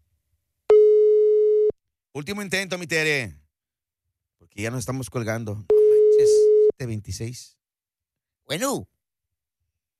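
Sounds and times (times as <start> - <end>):
telephone busy signal after redialing a call: 0.7 - 1.7
speech: 2.2 - 3.4, 4.5 - 7.6, 8.5 - 8.9.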